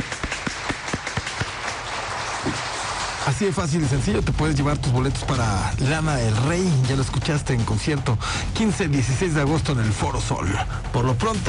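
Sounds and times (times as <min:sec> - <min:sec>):
applause: 0:00.0 - 0:04.2
speech: 0:03.4 - 0:11.4.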